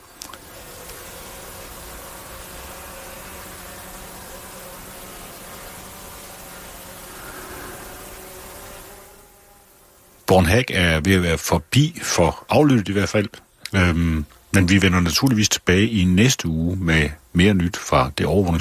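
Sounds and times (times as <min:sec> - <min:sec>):
drones flying overhead: 0:00.0 - 0:10.2
speech: 0:10.3 - 0:18.5.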